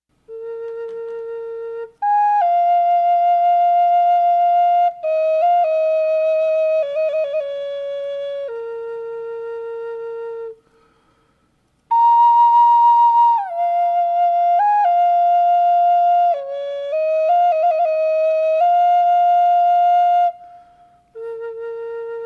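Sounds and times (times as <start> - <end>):
cane flute: 0.2 - 22.2.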